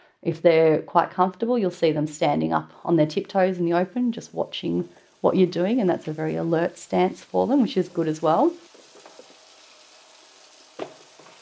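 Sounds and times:
speech: 0.2 - 8.6
hot water running into a sink: 3.5 - 11.3.

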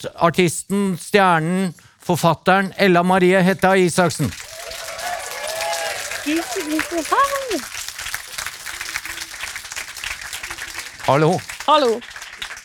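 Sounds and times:
speech: 0.0 - 4.5, 6.3 - 7.8, 11.1 - 12.1
crowd applause: 4.3 - 12.6
whoops and cheers: 4.4 - 7.7.

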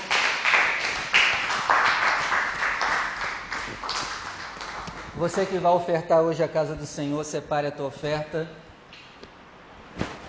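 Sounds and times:
audience applauding: 0.0 - 5.2
speech: 5.2 - 8.6.

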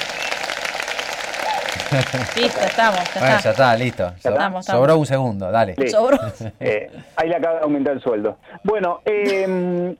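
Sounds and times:
group applause: 0.0 - 4.2
laughter: 1.8 - 3.1
speech: 1.9 - 9.9.

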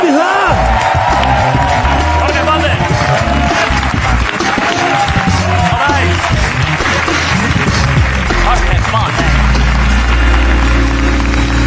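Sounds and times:
applause and cheering: 0.0 - 11.6.

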